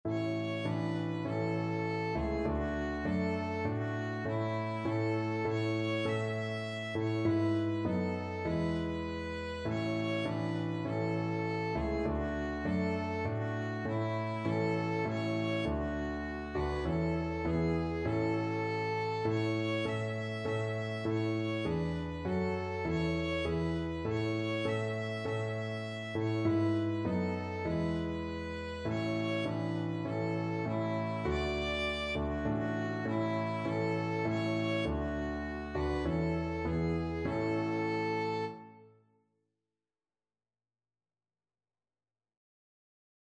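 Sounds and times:
violin: 0.0s - 38.9s.

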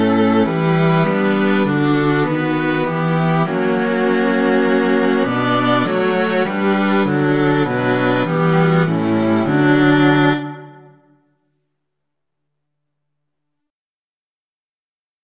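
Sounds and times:
string quartet playing a hymn: 0.0s - 11.0s.

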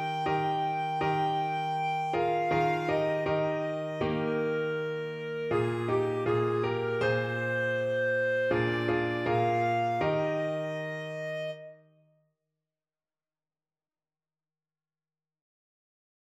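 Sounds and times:
clarinet: 0.0s - 12.0s.

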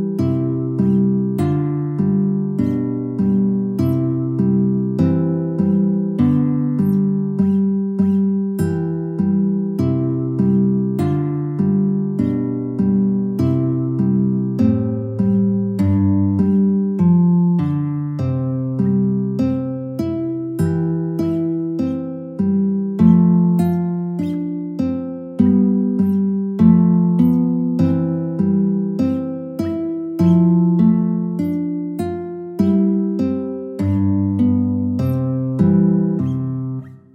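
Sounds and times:
guitar study in C: 0.0s - 37.1s.

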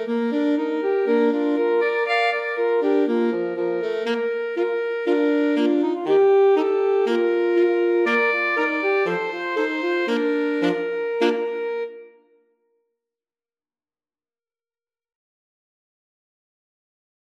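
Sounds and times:
alto sax quartet: 0.0s - 12.2s.

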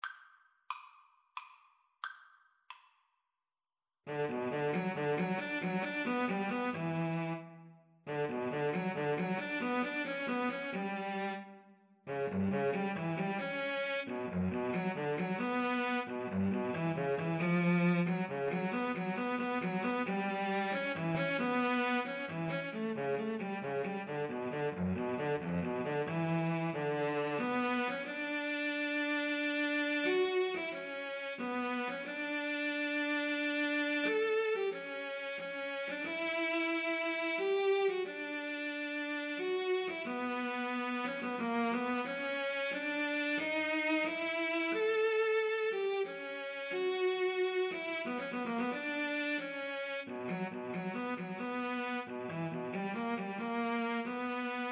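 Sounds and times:
violin and cello duet: 4.1s - 7.5s, 8.1s - 11.5s, 12.1s - 54.6s.

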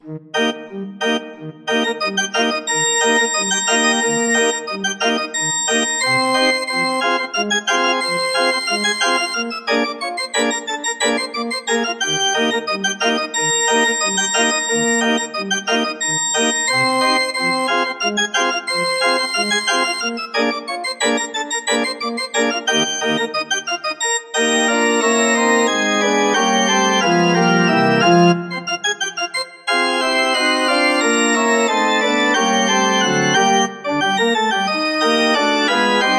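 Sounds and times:
organ: 0.0s - 36.1s.

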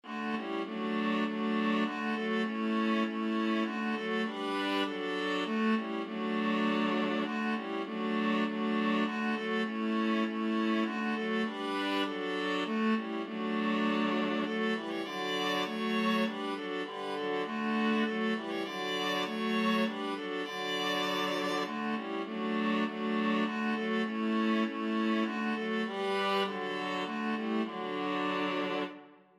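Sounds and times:
viola trio playing a hymn: 0.0s - 29.2s.

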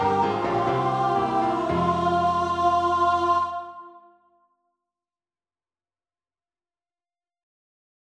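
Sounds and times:
vocal duet: 0.0s - 4.1s.

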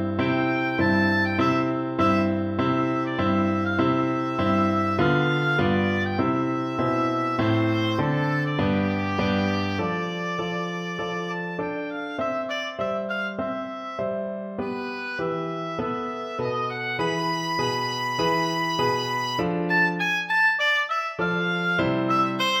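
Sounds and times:
oboe: 0.2s - 22.5s.

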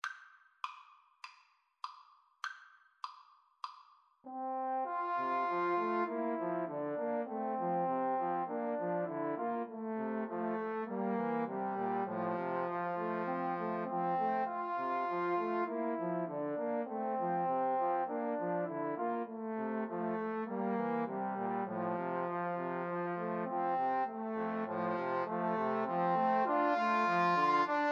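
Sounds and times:
trombone trio: 4.3s - 27.8s.

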